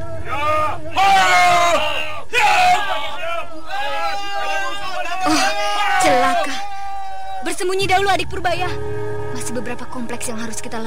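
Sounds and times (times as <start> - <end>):
crowd of palace guards shouting in alarm about intruders: 0.0 - 7.8
speech: 7.6 - 10.8.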